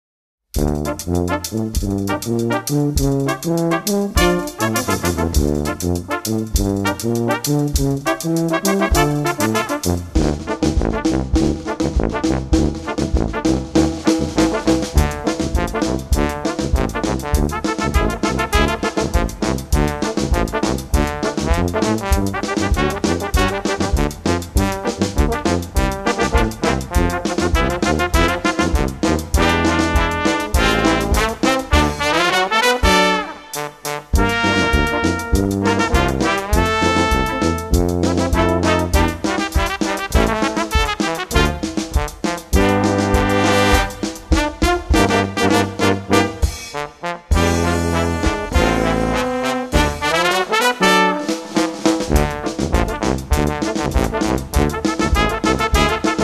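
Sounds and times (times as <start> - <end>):
brass band playing: 0.6 - 56.2.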